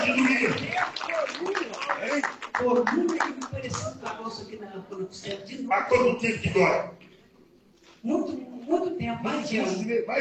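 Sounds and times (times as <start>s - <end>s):
audience clapping: 0.0s - 4.2s
speech: 4.5s - 7.0s, 8.0s - 10.1s.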